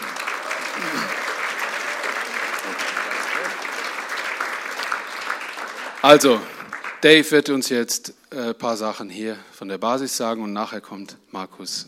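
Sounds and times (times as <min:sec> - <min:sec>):
audience applause: 0:00.0 - 0:07.2
speech: 0:06.0 - 0:11.8.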